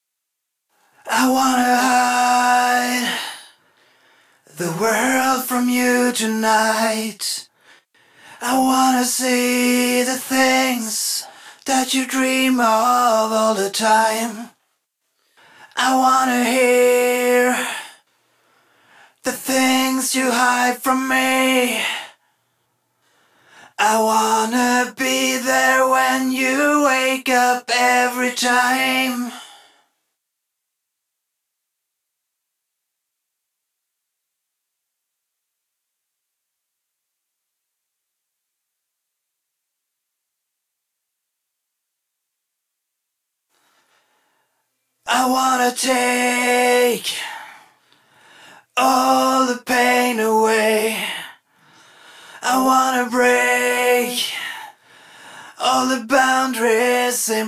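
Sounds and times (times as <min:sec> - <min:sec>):
main vocals: 0:01.0 - 0:03.5, 0:04.5 - 0:07.5, 0:08.4 - 0:14.5, 0:15.7 - 0:18.0, 0:19.2 - 0:22.2, 0:23.8 - 0:29.6, 0:45.1 - 0:47.6, 0:48.7 - 0:51.4, 0:52.4 - 0:54.8, 0:55.5 - 0:57.4.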